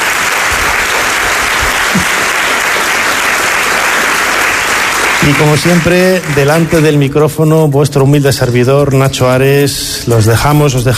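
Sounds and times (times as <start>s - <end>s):
audience applause: 0.0s - 7.2s
speech: 2.0s - 2.2s, 5.3s - 10.9s.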